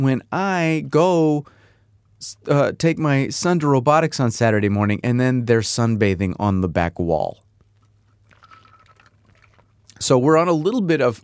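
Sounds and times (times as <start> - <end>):
speech: 0.0 - 1.6, 2.2 - 7.4, 10.0 - 11.2
person sipping lemon water: 7.6 - 10.0.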